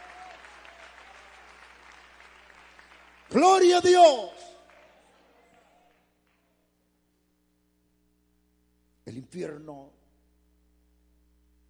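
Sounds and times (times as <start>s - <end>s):
audience applauding in praise: 0.0s - 6.6s
speech: 3.4s - 4.5s, 9.3s - 10.0s.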